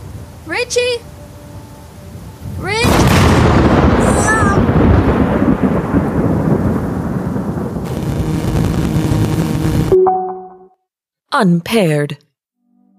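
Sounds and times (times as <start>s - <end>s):
speech: 0.5s - 1.1s, 11.4s - 12.2s
thunderstorm thunder: 2.8s - 9.9s.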